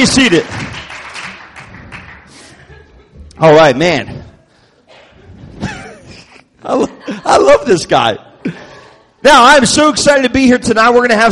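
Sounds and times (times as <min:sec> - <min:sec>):
speech: 0:00.0 - 0:00.6, 0:03.4 - 0:04.2, 0:06.6 - 0:08.6, 0:09.2 - 0:11.2
crowd applauding: 0:00.0 - 0:02.8
laughter: 0:02.2 - 0:09.2.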